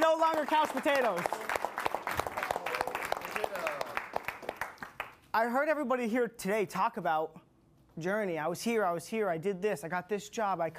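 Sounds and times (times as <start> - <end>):
audience applause: 0.0 - 5.2
speech: 0.3 - 1.5, 5.3 - 10.7.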